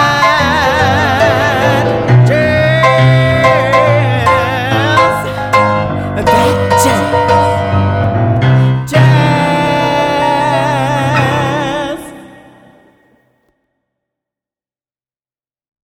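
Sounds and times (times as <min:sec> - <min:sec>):
people singing along to a showtune: 0:00.0 - 0:07.8, 0:08.9 - 0:13.2.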